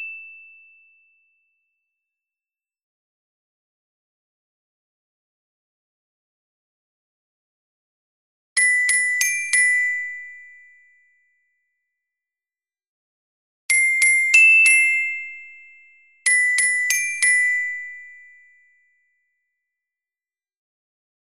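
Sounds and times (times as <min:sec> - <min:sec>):
soprano carillon: 0:08.6 - 0:10.7, 0:13.7 - 0:18.4.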